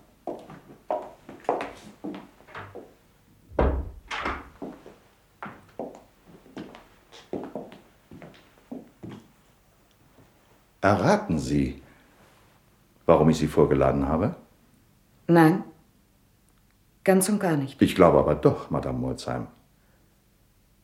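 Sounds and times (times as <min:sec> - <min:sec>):
door opening with a heavy thud as someone enters: 0:03.5 - 0:04.6
speech: 0:10.8 - 0:11.8, 0:13.1 - 0:14.4, 0:15.3 - 0:15.7, 0:17.0 - 0:19.6.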